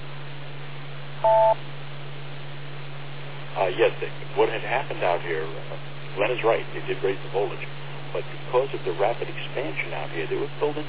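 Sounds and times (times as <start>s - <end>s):
steady low hum and hiss of a telephone line: 0.0s - 10.8s
two-tone electronic beep on a phone line: 1.2s - 1.6s
speech: 1.2s - 1.8s, 3.6s - 10.8s.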